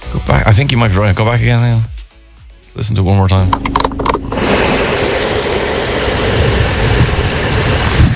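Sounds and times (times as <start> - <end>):
speech: 0.2 - 1.9, 2.8 - 4.1
fan running in a van: 3.6 - 8.0.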